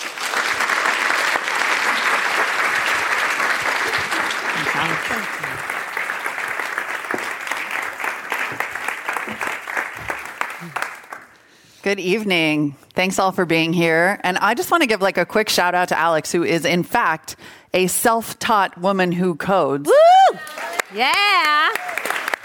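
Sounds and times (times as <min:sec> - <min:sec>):
audience applause: 0:00.0 - 0:11.4, 0:20.4 - 0:22.4
speech: 0:11.9 - 0:20.0, 0:20.9 - 0:21.8.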